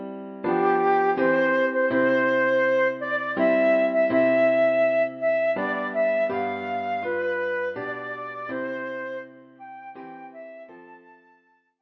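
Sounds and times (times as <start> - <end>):
flute: 0.5 - 11.8.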